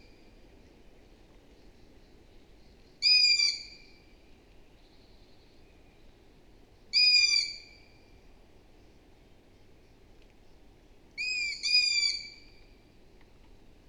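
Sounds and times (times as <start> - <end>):
long-eared owl Asio otus high squeaky call: 3.0 - 3.8, 7.0 - 7.8, 11.2 - 12.4.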